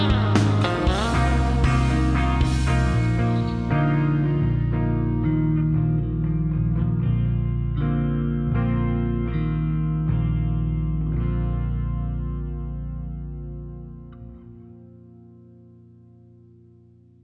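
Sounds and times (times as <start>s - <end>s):
drums: 0.0s - 4.8s
bass: 0.0s - 17.2s.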